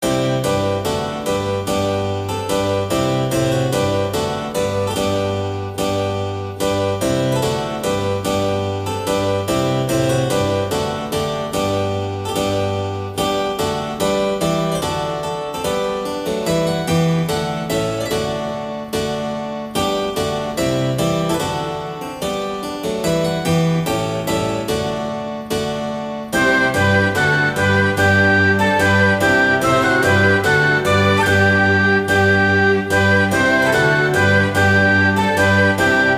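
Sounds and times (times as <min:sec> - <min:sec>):
gavotte: 0:00.0 - 0:36.1.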